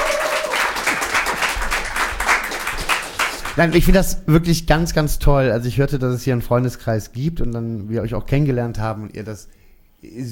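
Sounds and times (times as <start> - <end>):
audience applause: 0.0 - 3.8
speech: 3.6 - 10.3.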